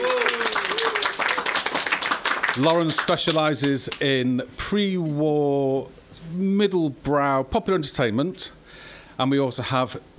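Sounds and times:
small round of applause: 0.0 - 4.0
speech: 2.6 - 10.1.

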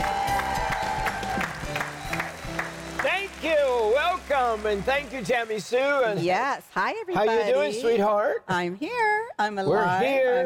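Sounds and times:
television studio audience applauding to welcome show hosts: 0.0 - 6.6
speech: 4.3 - 10.4.

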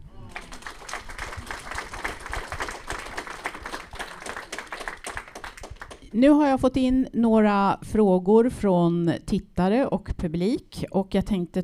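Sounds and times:
audience applause: 0.0 - 6.1
speech: 6.1 - 11.6.

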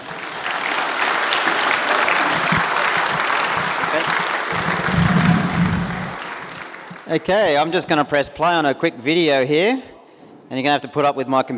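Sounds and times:
audience applause welcoming a Red Bull Air Race pilot at an evening event: 0.0 - 7.7
speech: 7.1 - 9.9, 10.5 - 11.5.

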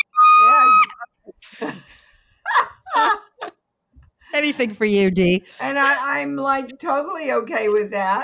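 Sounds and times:
woman's horror-movie scream: 0.0 - 1.0
laughter: 1.4 - 1.9, 2.5 - 3.6
speech: 4.4 - 8.2.

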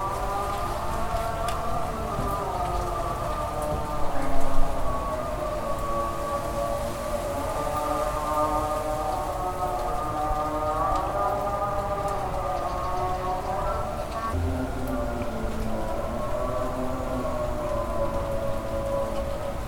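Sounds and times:
Muslim call to prayer outdoors: 0.0 - 19.6.

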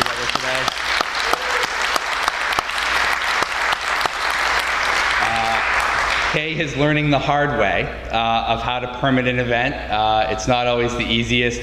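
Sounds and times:
audience round of applause: 0.0 - 6.4
speech: 6.3 - 11.6.

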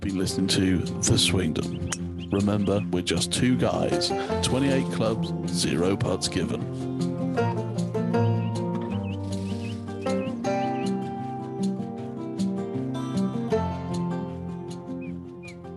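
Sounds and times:
speech: 0.0 - 6.9
outro music: 0.0 - 15.7
finch chirping in the outro music: 0.8 - 5.7, 8.2 - 11.8, 14.7 - 15.7.

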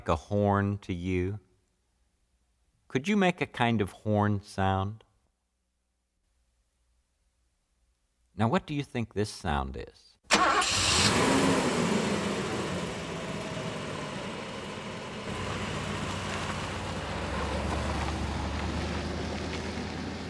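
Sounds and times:
speech: 0.0 - 1.5, 2.9 - 5.0, 8.4 - 11.7
car engine droning with a low mechanical rumble: 10.3 - 20.2.

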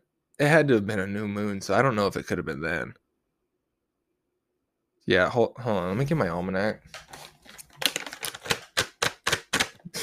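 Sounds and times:
speech: 0.4 - 3.0, 5.1 - 8.0
handling a bag of cat food: 6.9 - 8.6.

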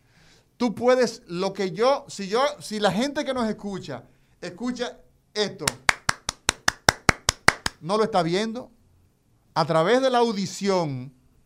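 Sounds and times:
speech: 0.6 - 5.9, 7.8 - 8.8, 9.6 - 11.2
hand clapping: 5.6 - 7.8.

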